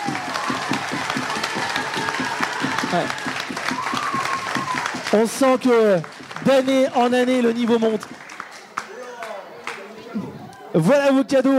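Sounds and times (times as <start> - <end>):
audience applauding students at a school competition: 0.0 - 10.0
speech: 2.9 - 3.2, 5.1 - 8.1, 10.8 - 11.5.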